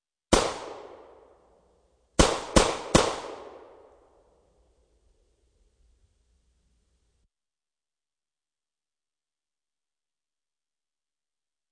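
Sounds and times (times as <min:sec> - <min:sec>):
.38 calibre pistol shot in the street: 0:00.3 - 0:01.3, 0:02.2 - 0:04.0.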